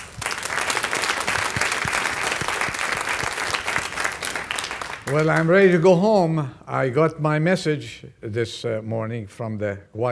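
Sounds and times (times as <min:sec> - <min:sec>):
audience applause for choir: 0:00.0 - 0:05.8
speech: 0:05.1 - 0:10.0.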